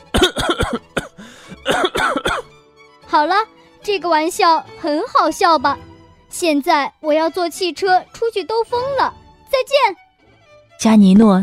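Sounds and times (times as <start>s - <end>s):
repeated coughing: 0.0s - 2.5s
speech: 3.2s - 10.0s, 10.8s - 11.4s.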